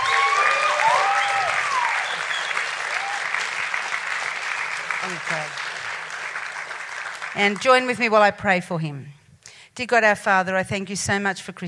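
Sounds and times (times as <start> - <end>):
audience applauding to welcome a guest speaker: 0.0 - 8.1
speech: 5.1 - 5.6, 7.4 - 9.2, 9.8 - 11.6.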